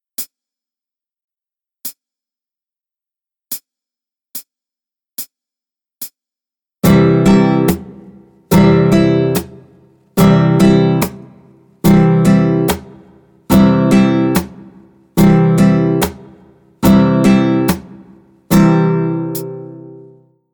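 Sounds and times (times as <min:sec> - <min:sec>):
slow tempo practice playing: 0:06.8 - 0:20.3.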